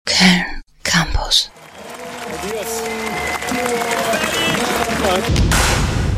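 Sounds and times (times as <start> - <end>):
speech: 0.2 - 0.5, 1.3 - 1.5
farewell applause: 1.5 - 6.0.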